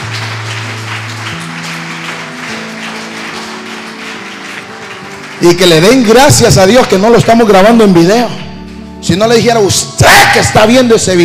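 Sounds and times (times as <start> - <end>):
audience applause: 0.0 - 7.4
speech: 5.4 - 8.4, 9.0 - 11.2.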